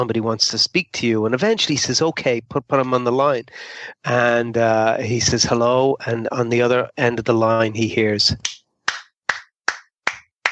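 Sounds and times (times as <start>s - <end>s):
speech: 0.0s - 8.6s
hands clapping: 8.4s - 10.5s.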